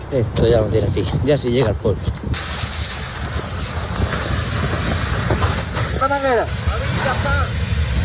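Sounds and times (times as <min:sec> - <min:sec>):
speech: 0:00.1 - 0:02.8, 0:06.2 - 0:07.6
Los Gallardos wildfire in Almería roaring: 0:02.4 - 0:08.0.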